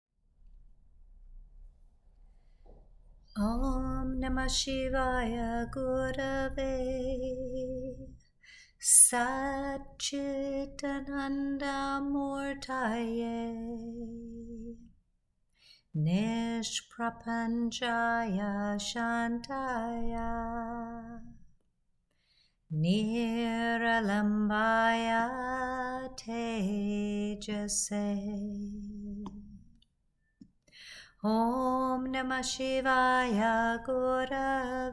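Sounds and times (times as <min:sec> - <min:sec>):
devotional chant to Shiva: 0:03.3 - 0:14.9, 0:16.0 - 0:21.5, 0:22.7 - 0:29.8, 0:31.2 - 0:34.9.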